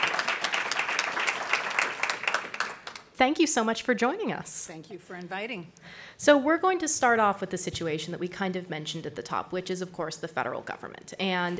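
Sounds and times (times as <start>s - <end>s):
live audience clapping for the Massachusetts State Senate President: 0.0s - 3.2s
speech: 3.2s - 11.5s.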